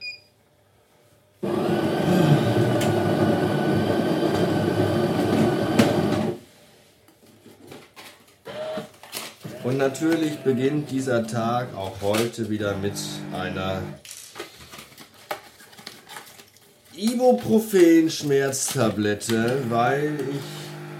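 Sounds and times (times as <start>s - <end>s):
milk frother whirring in a metal jug: 1.4s - 6.4s, 9.4s - 11.3s, 12.6s - 14.0s, 19.4s - 20.9s
speech: 9.7s - 14.1s, 17.0s - 20.6s.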